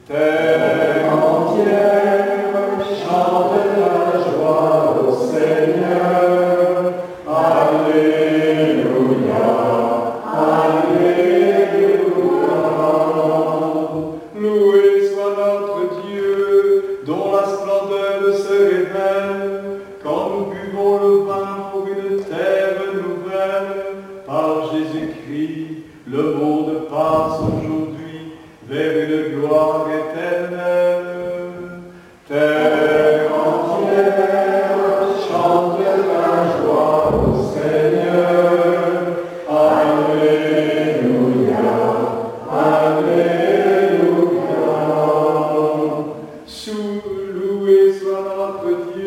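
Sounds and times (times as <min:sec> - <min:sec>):
hymn singing: 0:00.0 - 0:49.0.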